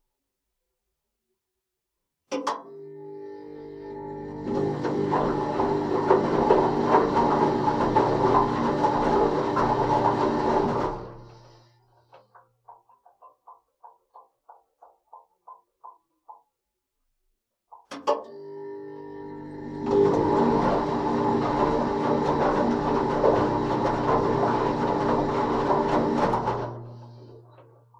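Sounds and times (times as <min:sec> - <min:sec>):
washing machine wash and spin cycle: 0:02.6 - 0:11.8, 0:18.3 - 0:27.9.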